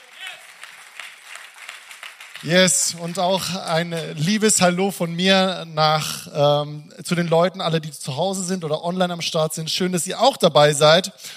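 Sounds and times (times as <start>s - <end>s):
audience applause: 0.0s - 4.4s
speech: 2.4s - 11.3s.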